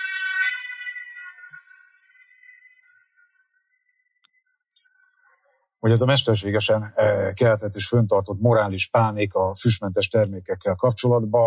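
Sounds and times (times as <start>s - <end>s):
passing emergency vehicle siren: 0.0s - 1.6s
speech: 5.8s - 11.4s.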